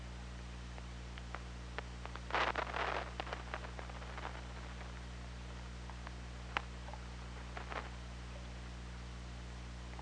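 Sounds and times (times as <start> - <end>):
steady underwater hiss and hum: 0.0 - 10.0
killer whale pulsed sounds: 1.2 - 8.0.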